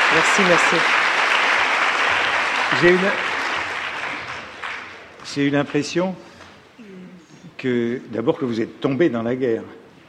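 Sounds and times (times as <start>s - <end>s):
crowd applause for a speaker: 0.0s - 6.0s
speech: 0.2s - 1.1s, 2.7s - 3.3s, 5.3s - 7.0s, 7.6s - 10.0s.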